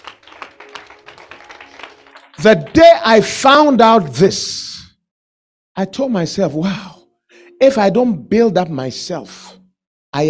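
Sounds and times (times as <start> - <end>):
audience clapping: 0.0 - 3.7
speech: 2.4 - 4.6, 5.8 - 6.9, 7.6 - 10.2.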